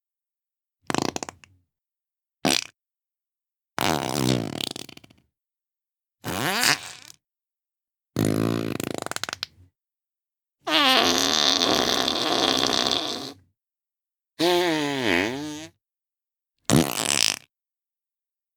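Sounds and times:
fart: 0.9 - 1.3, 2.4 - 2.7, 3.8 - 5.1, 6.2 - 7.1, 8.2 - 9.5, 10.7 - 13.4, 14.4 - 15.8, 16.7 - 17.5.

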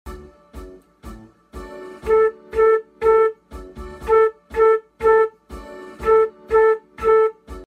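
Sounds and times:
piccolo: 1.9 - 3.4, 4.0 - 7.6.

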